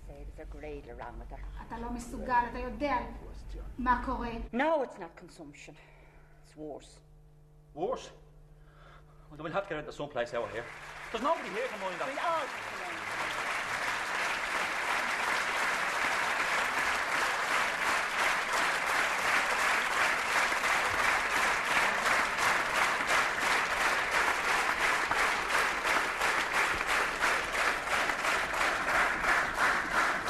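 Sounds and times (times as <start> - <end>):
speech: 0.4 - 7.1, 7.7 - 8.2, 9.3 - 13.0
audience applause: 10.2 - 30.2
slow rhythmic hand clap: 10.5 - 30.2.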